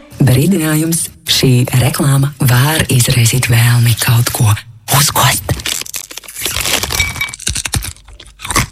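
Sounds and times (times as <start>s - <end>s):
speech: 0.4s - 5.7s
crunchy nuts being chewed: 5.4s - 8.7s.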